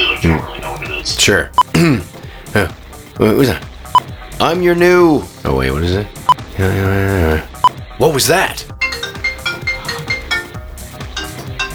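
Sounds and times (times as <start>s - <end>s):
speech: 0.2s - 8.8s
phone ringtone: 8.8s - 11.7s.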